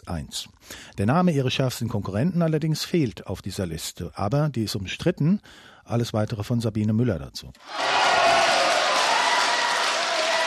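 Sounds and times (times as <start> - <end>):
speech: 0.1 - 8.0
Christin Brinker's supporters cheering: 7.6 - 10.4.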